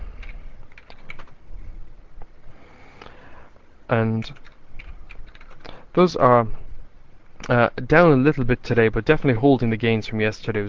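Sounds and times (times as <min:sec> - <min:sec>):
typing on a computer keyboard: 0:00.2 - 0:01.4, 0:04.2 - 0:05.7
speech: 0:03.9 - 0:04.5, 0:06.0 - 0:06.6, 0:07.4 - 0:10.6.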